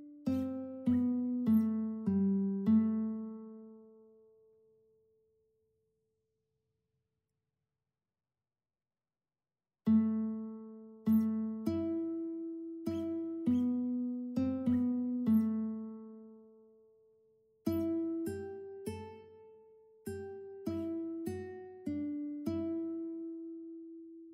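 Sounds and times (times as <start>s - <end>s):
guitar duet: 0.0s - 4.1s, 9.9s - 16.6s, 17.6s - 24.3s.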